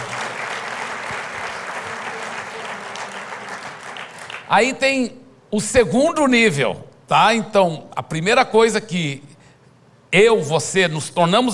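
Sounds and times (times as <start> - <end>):
audience applause: 0.0 - 4.6
speech: 4.5 - 9.3, 10.1 - 11.5.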